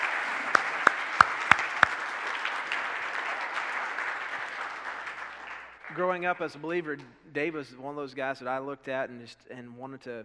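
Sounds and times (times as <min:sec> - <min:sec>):
audience applause: 0:00.0 - 0:06.0
speech: 0:06.0 - 0:10.2.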